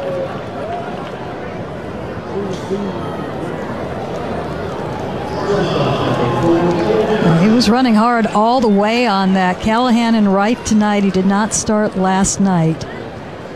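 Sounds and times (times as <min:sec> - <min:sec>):
baseball crowd cheering: 0:00.0 - 0:13.5
speech: 0:02.4 - 0:03.5, 0:05.5 - 0:12.9
murmuring: 0:05.4 - 0:11.2.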